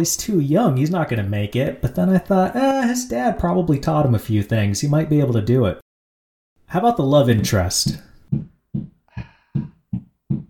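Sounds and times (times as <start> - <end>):
speech: 0.0 - 5.8, 6.7 - 8.5
knocking on a door: 8.3 - 10.4.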